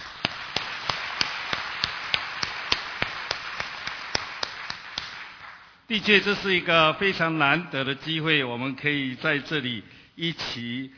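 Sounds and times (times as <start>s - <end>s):
crowd clapping: 0.0s - 5.8s
speech: 5.9s - 10.9s.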